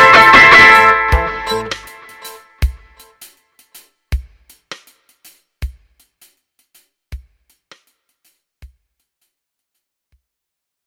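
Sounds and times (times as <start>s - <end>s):
dub charango playing: 0.0s - 3.1s.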